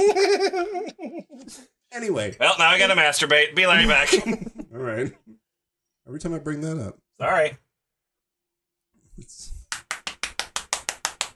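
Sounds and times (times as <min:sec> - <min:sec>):
speech: 0:00.0 - 0:05.2, 0:06.1 - 0:07.6
hand clapping: 0:09.6 - 0:11.3.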